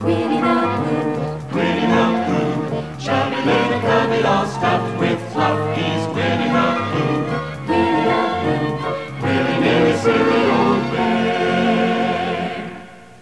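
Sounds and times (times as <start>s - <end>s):
little tune: 0.0s - 12.9s.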